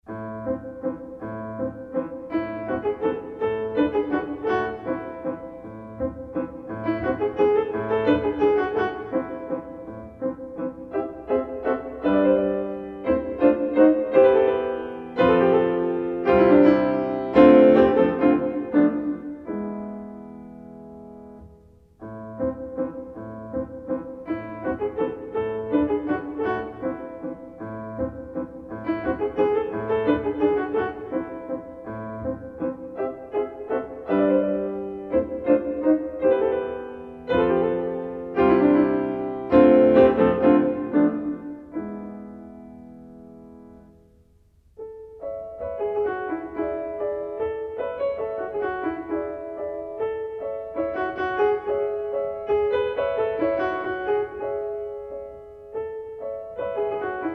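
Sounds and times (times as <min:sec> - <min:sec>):
waltz in A minor: 0:00.0 - 0:57.3.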